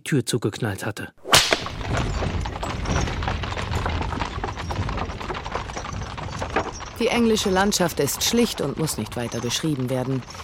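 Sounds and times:
speech: 0.0 - 2.3, 7.0 - 10.4
horse-drawn carriage hooves clip-clopping: 1.4 - 10.4.

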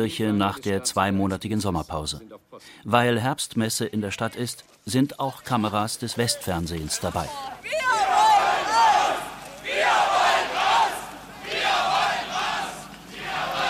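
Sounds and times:
speech: 0.0 - 8.0
large crowd of demonstrators chanting: 7.5 - 13.6.

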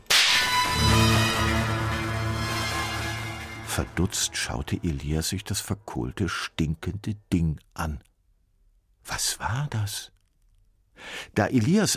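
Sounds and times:
explosion: 0.0 - 5.1
speech: 3.8 - 8.1, 9.0 - 10.2, 11.0 - 11.9.

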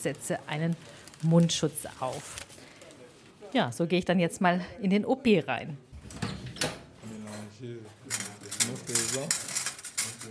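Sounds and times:
speech: 0.0 - 2.5, 3.5 - 6.2, 7.6 - 9.6
metal surgical clamps and scissors clinking while sorted: 7.2 - 10.2.

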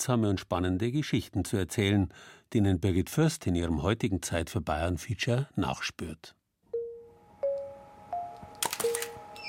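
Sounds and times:
speech: 0.0 - 6.4
camera shutter clicks: 8.6 - 9.2.

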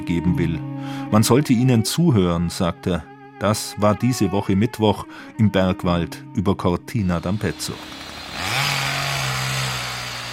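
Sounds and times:
speech: 0.1 - 8.5
chainsaw felling trees in larch forest: 7.2 - 10.3.

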